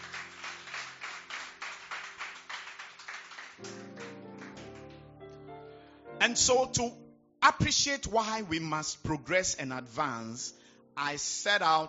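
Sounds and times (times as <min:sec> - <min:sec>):
audience clapping hands: 0:00.0 - 0:05.4
speech: 0:06.2 - 0:11.8.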